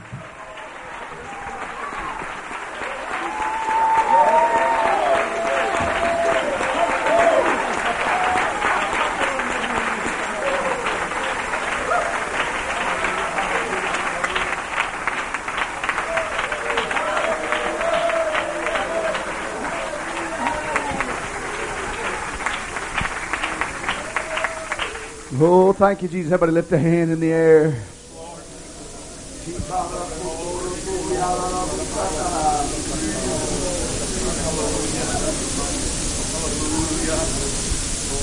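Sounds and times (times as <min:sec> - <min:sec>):
audience applause: 0:00.0 - 0:38.2
speech: 0:25.8 - 0:27.9, 0:29.7 - 0:33.7.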